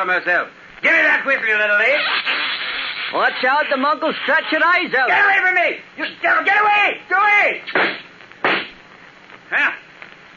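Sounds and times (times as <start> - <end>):
speech: 0.0 - 2.3, 3.1 - 8.0, 9.5 - 9.8
gunshot: 7.7 - 8.8.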